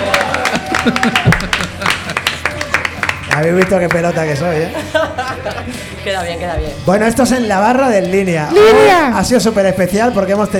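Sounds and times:
crowd clapping: 0.0s - 4.4s
laughter: 0.1s - 2.8s, 4.6s - 6.0s
speech: 0.8s - 1.7s, 3.4s - 10.5s.

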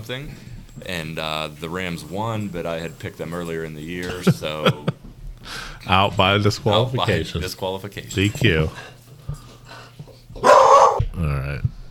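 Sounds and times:
speech: 0.0s - 9.0s
dogs barking: 10.4s - 11.0s.

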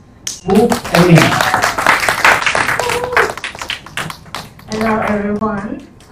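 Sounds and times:
speech: 0.4s - 1.6s, 4.8s - 5.9s
audience applause: 0.5s - 5.3s.

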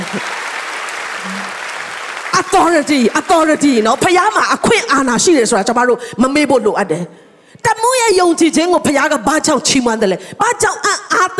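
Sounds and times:
church congregation clapping hands in praise during a Sunday sermon: 0.0s - 5.1s
speech: 0.1s - 0.4s, 2.4s - 11.3s.

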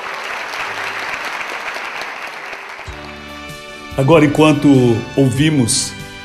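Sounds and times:
audience applause: 0.0s - 3.6s
sustained organ or keyboard chord: 2.9s - 6.2s
speech: 4.0s - 6.0s.

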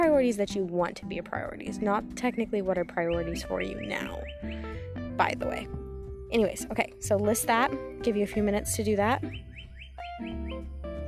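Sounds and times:
speech: 0.2s - 9.5s, 10.2s - 10.7s
backyard birds singing: 2.3s - 5.6s, 7.5s - 10.8s.

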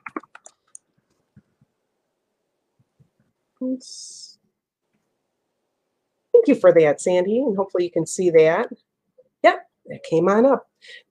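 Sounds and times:
typing on a computer keyboard: 0.0s - 0.8s
speech: 3.6s - 4.3s, 6.4s - 8.8s, 9.4s - 11.1s.

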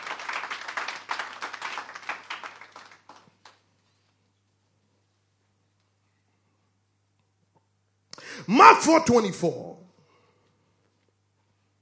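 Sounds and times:
congregation clapping hands in praise during a church service: 0.0s - 3.7s
speech: 8.5s - 9.7s.

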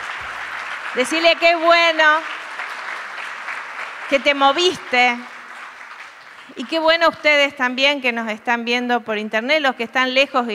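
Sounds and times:
audience applauding: 0.0s - 7.2s
speech: 0.9s - 2.4s, 4.1s - 5.3s, 6.5s - 10.5s.

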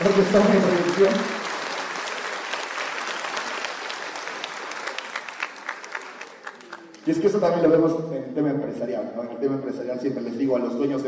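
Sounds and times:
audience applause: 0.0s - 7.2s
speech: 0.2s - 1.4s, 7.1s - 11.0s.

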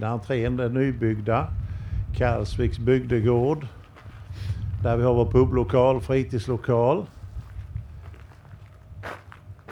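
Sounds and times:
speech: 0.0s - 3.8s, 4.4s - 7.2s
faint footsteps walking down to the Karlsvik community hall: 3.6s - 5.0s, 7.1s - 9.7s.

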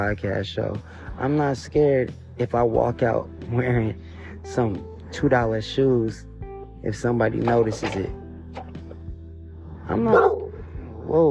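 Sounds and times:
speech: 0.0s - 8.2s, 9.9s - 10.4s, 11.1s - 11.2s
dog barking: 10.0s - 10.6s.

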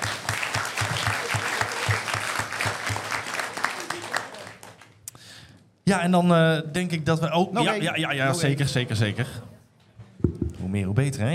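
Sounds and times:
audience applause: 0.0s - 5.0s
speech: 5.9s - 9.5s, 10.7s - 11.3s.

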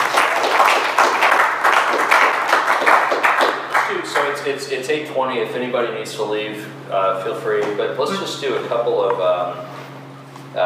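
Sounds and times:
audience applause: 0.0s - 4.3s
speech: 4.4s - 9.7s.

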